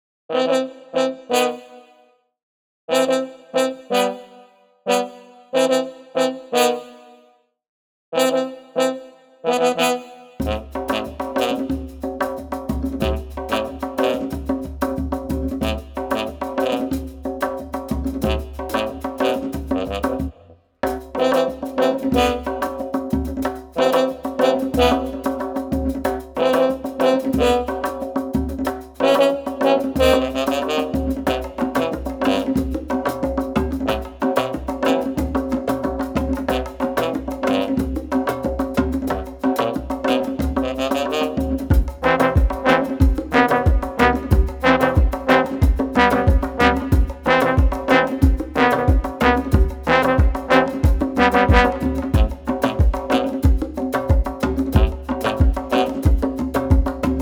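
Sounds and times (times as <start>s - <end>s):
Balkan brass band underscore: 0.3s - 2.1s, 2.9s - 7.3s, 8.2s - 57.1s.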